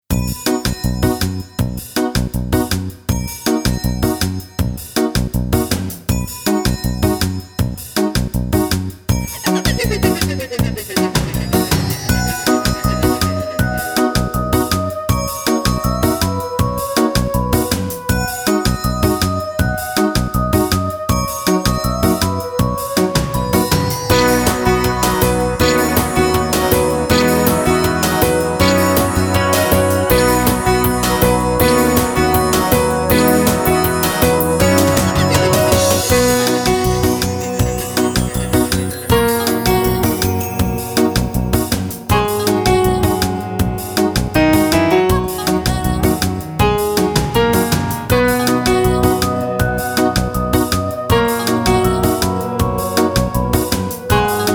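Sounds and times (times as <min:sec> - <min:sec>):
karaoke backing track: 0:00.1 - 0:54.5
laughter: 0:09.4 - 0:13.3.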